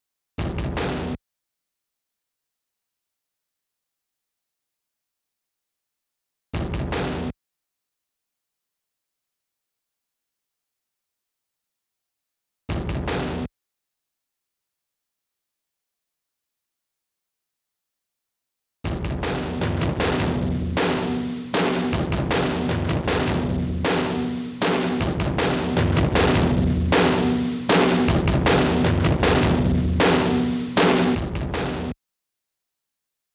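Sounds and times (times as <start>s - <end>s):
drums: 0.4s - 1.2s, 6.6s - 7.4s, 12.7s - 13.5s, 18.8s - 32.0s.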